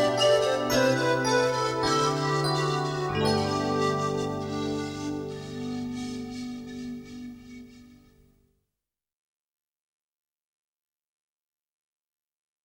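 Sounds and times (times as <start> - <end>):
flute: 0.0 - 8.4.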